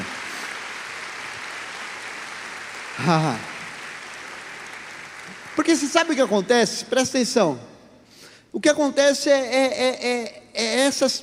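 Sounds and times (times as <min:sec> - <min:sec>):
audience applauding: 0:00.0 - 0:06.8
speech: 0:03.0 - 0:03.5, 0:05.6 - 0:07.7, 0:08.5 - 0:11.2.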